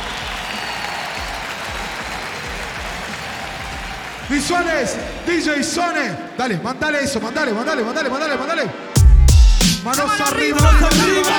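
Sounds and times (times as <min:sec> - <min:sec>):
audience applause: 0:00.0 - 0:05.3
speech: 0:04.3 - 0:08.8, 0:09.8 - 0:11.3.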